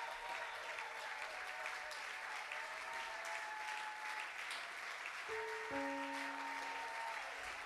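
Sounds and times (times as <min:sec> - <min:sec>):
audience applauding: 0:00.0 - 0:07.6.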